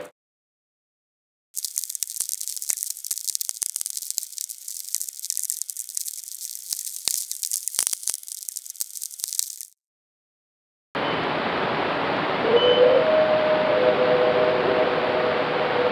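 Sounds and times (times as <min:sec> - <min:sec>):
VLF radio: 0:11.0 - 0:15.9.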